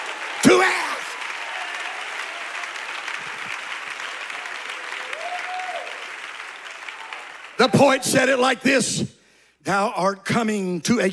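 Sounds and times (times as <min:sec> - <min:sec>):
audience clapping: 0:00.0 - 0:08.6
speech: 0:07.6 - 0:11.1.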